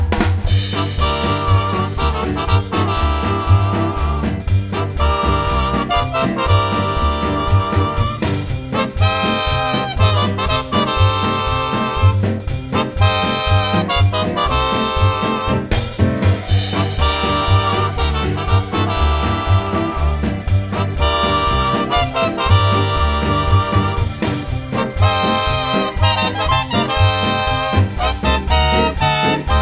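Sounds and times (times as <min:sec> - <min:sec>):
jazz music: 0:00.2 - 0:29.6.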